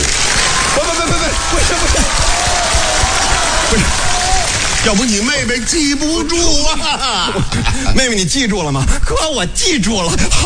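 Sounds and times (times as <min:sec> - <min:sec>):
audience applause: 0:00.0 - 0:06.4
speech: 0:04.8 - 0:10.4.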